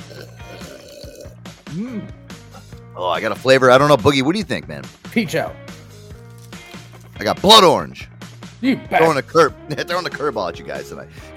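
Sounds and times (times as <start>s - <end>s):
someone sipping kombucha from a can: 0.0s - 1.4s
speech: 1.7s - 2.2s, 3.0s - 5.6s, 7.2s - 11.3s.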